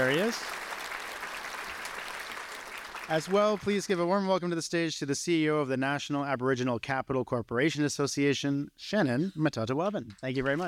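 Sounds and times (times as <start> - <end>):
audience applauding to welcome a panelist to the stage: 0.0 - 4.0
speech: 0.1 - 0.6, 3.1 - 10.6.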